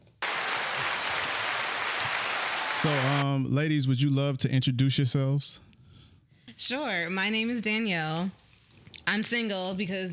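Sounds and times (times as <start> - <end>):
people clapping: 0.0 - 3.2
speech: 2.8 - 5.7, 6.6 - 8.4, 9.1 - 10.1.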